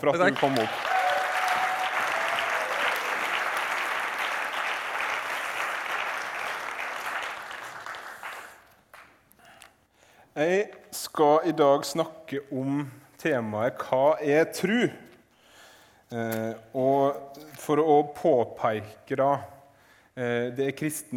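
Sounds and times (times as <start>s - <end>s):
speech: 0.0s - 0.9s, 10.4s - 15.1s, 16.1s - 19.6s, 20.2s - 21.1s
audience applause: 0.0s - 9.1s.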